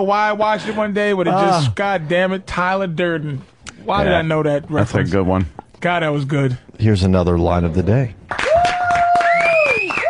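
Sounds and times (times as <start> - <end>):
speech: 0.0 - 8.4
slow clapping: 8.3 - 10.0.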